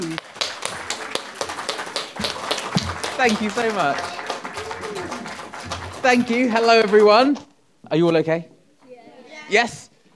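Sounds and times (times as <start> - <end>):
audience applause: 0.0 - 7.4
speech: 3.2 - 4.2, 6.0 - 8.5, 9.5 - 9.8.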